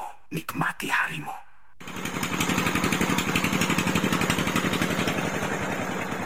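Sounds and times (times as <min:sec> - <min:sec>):
speech: 0:00.3 - 0:01.4
motorcycle taxi engine idling: 0:01.8 - 0:06.2.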